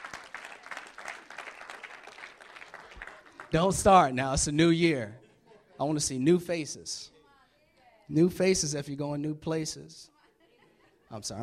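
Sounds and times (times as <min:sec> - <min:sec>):
audience applause: 0:00.0 - 0:04.0
speech: 0:03.5 - 0:05.2, 0:05.8 - 0:07.1, 0:08.1 - 0:10.1, 0:11.1 - 0:11.4
laughter: 0:05.1 - 0:06.2, 0:10.1 - 0:11.4.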